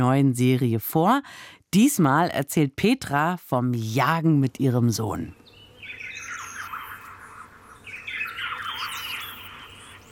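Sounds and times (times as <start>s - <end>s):
speech: 0.0s - 5.4s
birdsong and bird calls: 5.0s - 10.0s.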